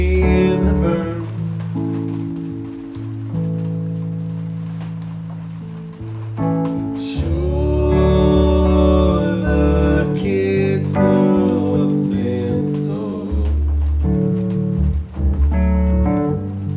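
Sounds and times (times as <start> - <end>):
keyboard music in D: 0.0 - 16.7
rain: 0.0 - 16.7.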